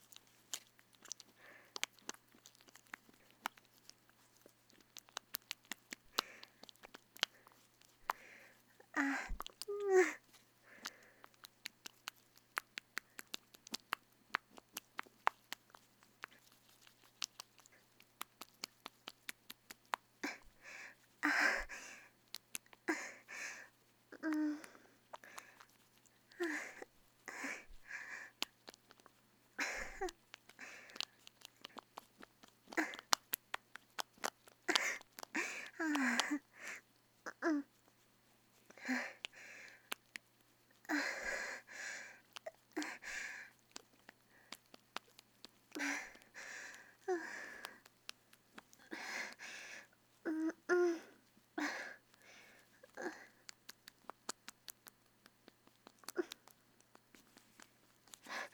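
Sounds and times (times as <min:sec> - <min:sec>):
squelching sounds: 0:00.0 - 0:36.9, 0:38.6 - 0:58.5.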